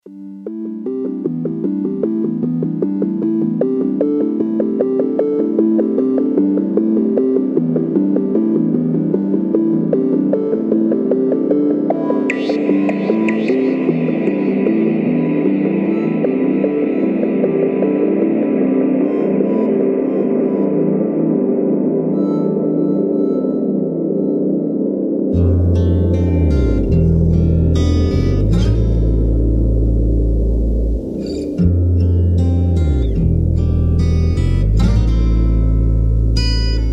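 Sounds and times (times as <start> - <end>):
psychedelic groove: 0.6 - 36.9.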